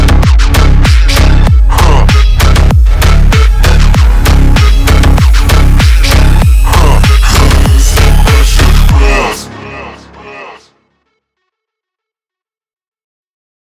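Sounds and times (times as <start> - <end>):
bass: 0.0 - 10.9.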